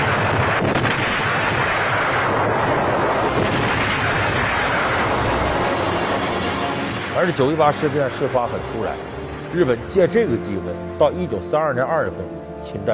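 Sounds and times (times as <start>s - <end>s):
artillery shelling: 0.0s - 9.7s
speech: 7.2s - 12.9s.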